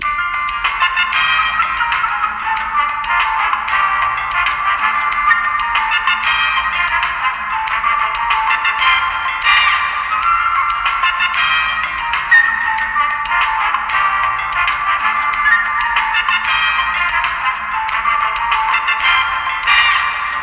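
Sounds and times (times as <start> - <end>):
elevator music: 0.0 - 20.4.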